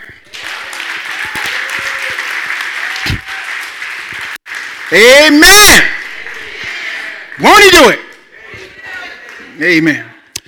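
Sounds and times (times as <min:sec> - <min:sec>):
audience applause: 0:00.1 - 0:10.0
scattered shouts: 0:00.4 - 0:03.7, 0:04.9 - 0:09.2
speech: 0:04.9 - 0:06.0, 0:07.4 - 0:08.0, 0:09.6 - 0:10.1.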